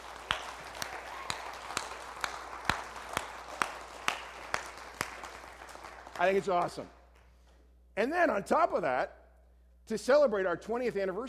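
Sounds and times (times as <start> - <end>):
audience rhythmic clapping: 0.0 - 7.5
speech: 6.2 - 7.0, 8.0 - 9.2, 9.9 - 11.2.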